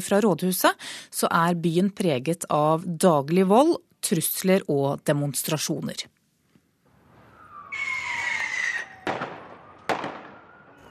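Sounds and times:
speech: 0.0 - 6.2
firework whistle during street riots: 7.0 - 10.8.

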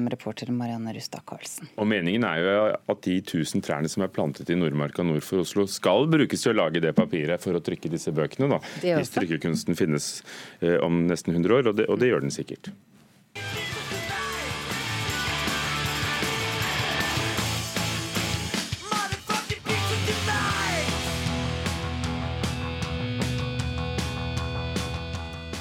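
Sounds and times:
speech: 0.0 - 12.9
rock song played from a record: 13.4 - 25.6.

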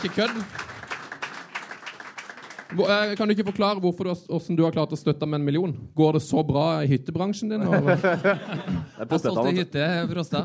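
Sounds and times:
speech: 0.0 - 0.7, 2.7 - 10.4
applause: 0.0 - 3.8
laughter: 7.6 - 9.4.

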